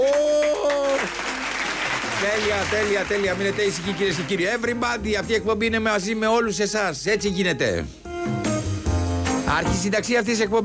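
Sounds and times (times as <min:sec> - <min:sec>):
applause: 0:00.0 - 0:04.6
speech: 0:02.3 - 0:08.5, 0:09.5 - 0:10.6.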